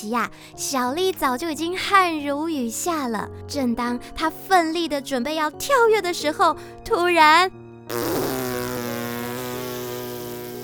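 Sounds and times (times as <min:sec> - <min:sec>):
speech: 0:00.0 - 0:08.3
cartoon fart sound effect: 0:07.9 - 0:10.6.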